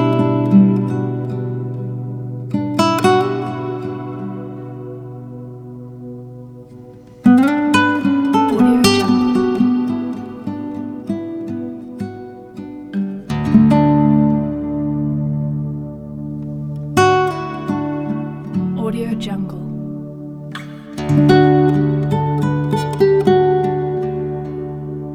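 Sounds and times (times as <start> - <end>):
ambient acoustic guitar: 0.0 - 25.1.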